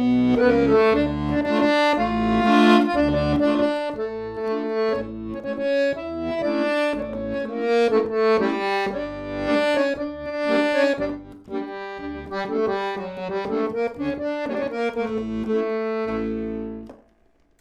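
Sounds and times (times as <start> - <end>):
klezmer music: 0.0 - 17.5.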